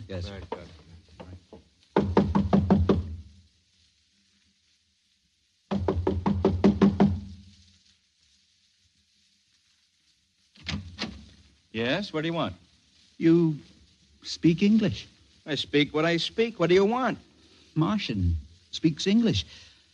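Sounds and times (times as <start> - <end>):
speech: 0.1 - 0.8, 11.8 - 12.6, 13.2 - 19.7
knocking on a door: 0.4 - 3.2, 5.7 - 7.3.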